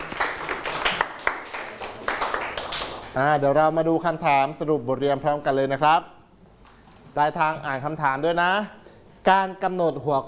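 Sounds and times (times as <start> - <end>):
classroom clapping for classmates: 0.0 - 3.2
speech: 3.2 - 6.2, 7.2 - 10.2.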